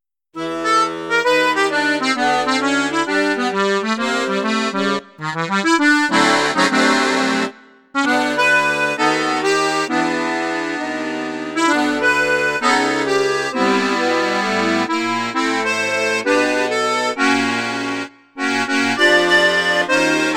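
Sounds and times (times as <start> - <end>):
accordion on high flute register: 0.3 - 20.3.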